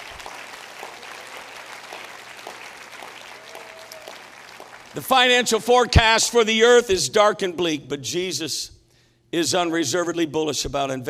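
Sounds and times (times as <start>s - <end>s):
crowd clapping: 0.0s - 5.5s
speech: 5.0s - 11.0s.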